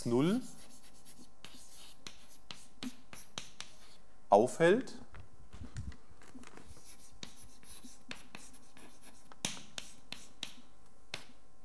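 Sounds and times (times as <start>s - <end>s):
speech: 0.0s - 0.6s, 4.3s - 5.0s
handwriting a formula during a lecture: 0.5s - 4.0s, 6.4s - 11.4s.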